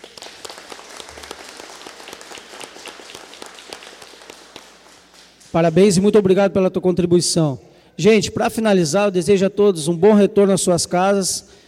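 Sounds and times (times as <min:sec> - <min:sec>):
crowd applauding: 0:00.0 - 0:06.0
speech: 0:05.5 - 0:11.6.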